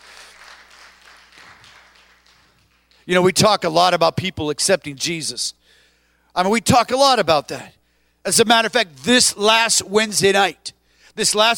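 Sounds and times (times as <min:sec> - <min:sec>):
audience hand clapping: 0:00.0 - 0:03.1
speech: 0:03.1 - 0:05.8, 0:06.4 - 0:11.5.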